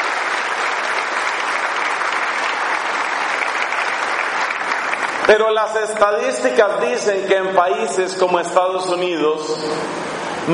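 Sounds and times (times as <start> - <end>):
audience applause: 0.0 - 6.5
speech: 5.3 - 10.5.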